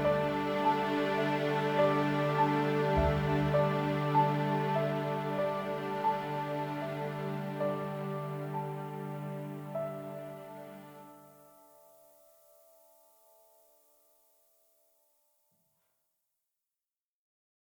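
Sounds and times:
sad instrumental music: 0.0 - 12.4.

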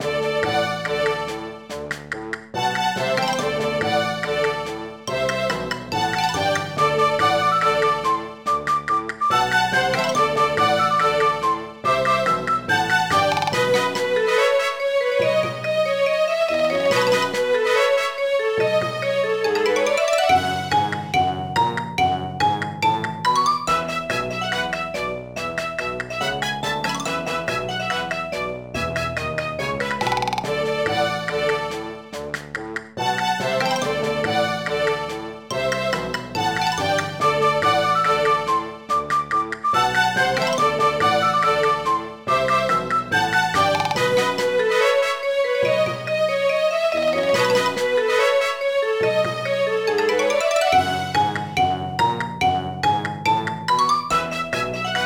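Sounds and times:
mini game action music: 0.0 - 55.0.

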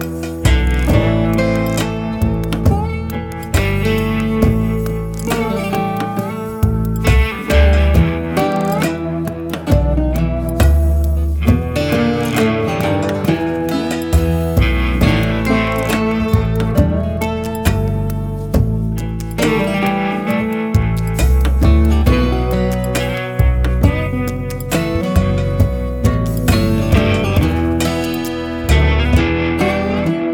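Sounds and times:
market ambience: 0.0 - 30.2.

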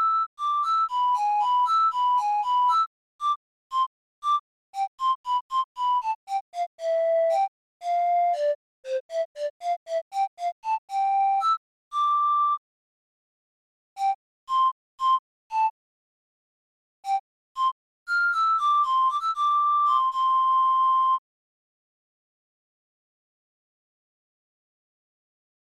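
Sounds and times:
flute: 0.0 - 12.6, 14.0 - 15.8, 17.0 - 21.2.

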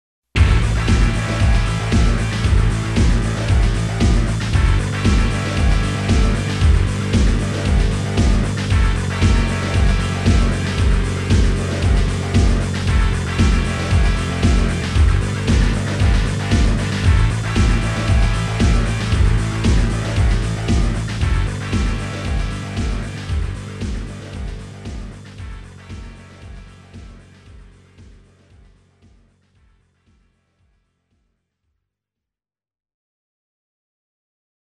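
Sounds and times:
music: 0.4 - 31.8.

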